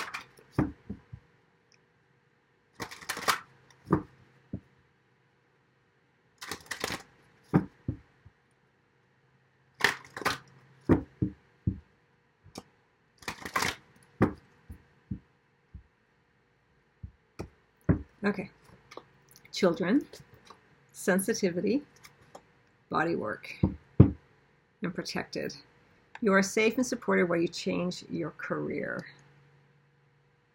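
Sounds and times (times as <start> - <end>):
shuffling a deck of life purpose cards: 2.8 - 4.0, 6.4 - 7.7, 9.8 - 11.0, 13.2 - 14.4
cards squared and set down with taps and snaps: 2.8 - 4.2, 6.4 - 8.0, 9.8 - 11.8, 12.6 - 14.4
speech: 18.3 - 18.6, 19.6 - 20.3, 21.0 - 21.9, 22.9 - 23.7, 25.0 - 29.1.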